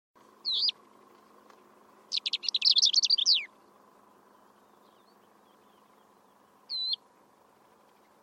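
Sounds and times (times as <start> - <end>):
bird chirping in trilled bursts of high twittering notes: 0.2 - 8.2.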